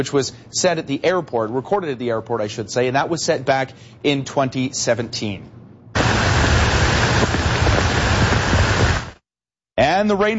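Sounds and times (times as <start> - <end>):
speech: 0.0 - 5.6, 10.0 - 10.3
heavy rain downpour in the Byward Market: 6.0 - 9.2.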